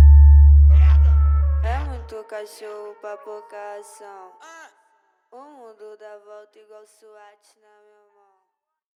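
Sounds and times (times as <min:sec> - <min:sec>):
Brazilian funk automotivo music: 0:00.0 - 0:02.0.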